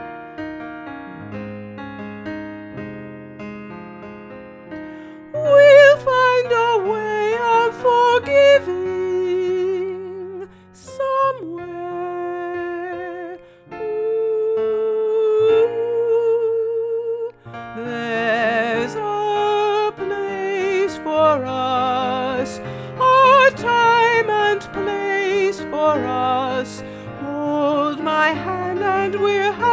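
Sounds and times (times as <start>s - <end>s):
piano: 0.0s - 29.7s
soprano singing: 4.8s - 29.7s.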